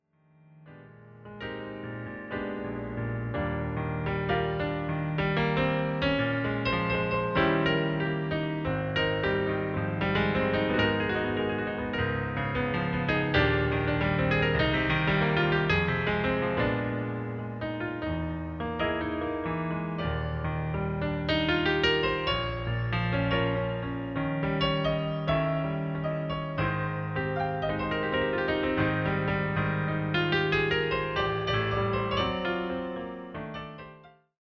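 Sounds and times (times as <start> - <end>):
solo piano: 0.0 - 34.4.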